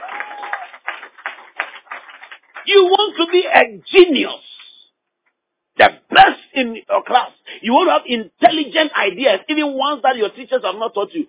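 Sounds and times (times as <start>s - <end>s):
audience clapping: 0.0s - 3.5s
speech: 2.6s - 4.5s, 5.8s - 11.2s.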